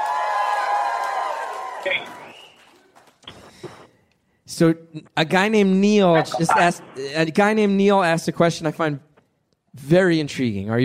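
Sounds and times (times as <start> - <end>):
live crowd cheering and whooping: 0.0 - 2.5
speech: 1.8 - 2.2, 4.6 - 9.1, 9.8 - 10.8.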